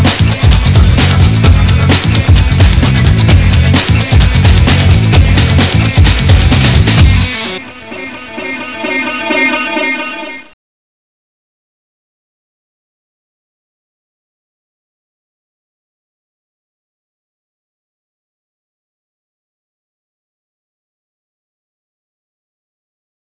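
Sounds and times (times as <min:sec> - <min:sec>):
techno music: 0:00.0 - 0:10.6.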